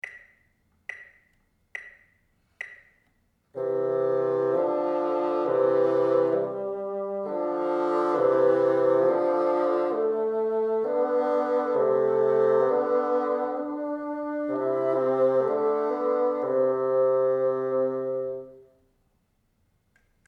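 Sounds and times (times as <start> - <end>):
bassoon: 3.6 - 18.8.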